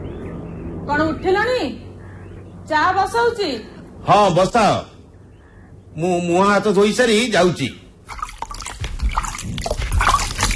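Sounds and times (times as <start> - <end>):
speech: 0.9 - 1.8, 2.7 - 4.9, 6.0 - 8.2
water filling a clay pot: 8.1 - 10.5.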